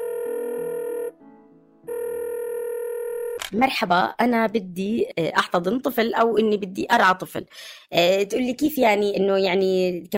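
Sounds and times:
telephone ringback tone on an outgoing call: 0.0 - 1.2, 1.9 - 3.4
speech: 3.5 - 10.1.

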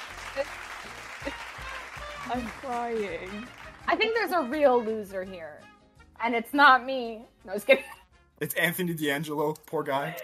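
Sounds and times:
canned crowd applause and cheers: 0.0 - 4.0
speech: 0.4 - 0.6, 2.3 - 10.2.

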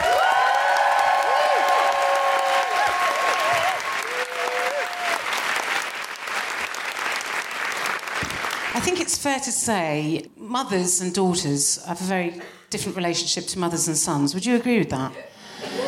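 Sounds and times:
stand-up comedy audience cheering and whooping in Manchester: 0.0 - 5.9
stand-up comedy audience applause in Manchester: 0.0 - 8.8
speech: 8.9 - 15.7.

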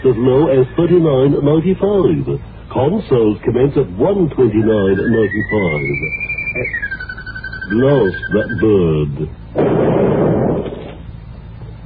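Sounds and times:
speech: 0.1 - 6.8, 7.7 - 10.1
cannon firing: 9.5 - 11.1.

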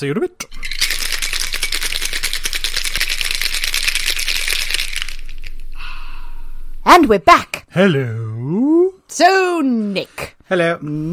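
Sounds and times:
speech: 0.0 - 0.6, 6.9 - 11.1
ice rattling in a cocktail shaker shaken hard: 0.5 - 5.6.

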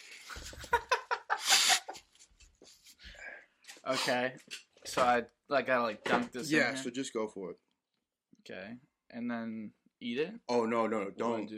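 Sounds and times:
laughter: 0.3 - 2.2
person blowing their nose: 1.3 - 2.1
speech: 3.9 - 7.7, 8.5 - 11.5.

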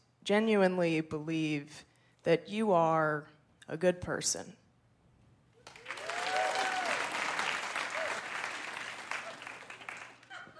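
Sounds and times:
speech: 0.3 - 4.6
crowd applause: 5.6 - 10.5
faint voices and whoops: 5.8 - 7.2, 7.9 - 8.4.

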